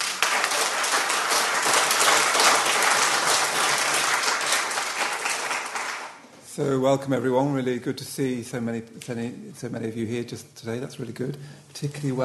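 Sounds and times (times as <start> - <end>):
audience applause for a poet at the London Buddhist Centre: 0.0 - 6.2
speech: 6.6 - 12.2.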